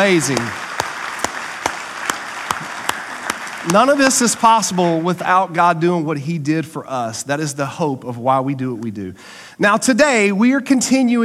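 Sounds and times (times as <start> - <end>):
speech: 0.0 - 0.6, 3.6 - 11.2
sharp claps: 0.0 - 4.8
audience applause: 0.0 - 5.1.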